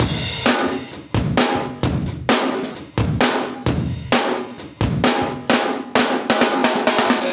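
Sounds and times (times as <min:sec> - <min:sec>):
live breakbeat drums at 131 bpm: 0:00.0 - 0:07.3.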